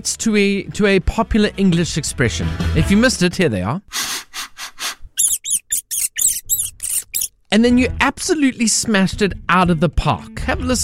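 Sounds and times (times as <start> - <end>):
speech: 0.0 - 4.0, 7.5 - 10.8
sniffing: 3.9 - 7.3
rat squeaking: 5.2 - 7.4.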